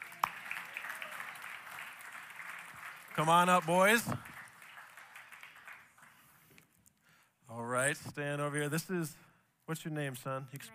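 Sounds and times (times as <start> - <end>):
audience applause: 0.0 - 6.4
speech: 3.2 - 4.3, 7.8 - 10.7.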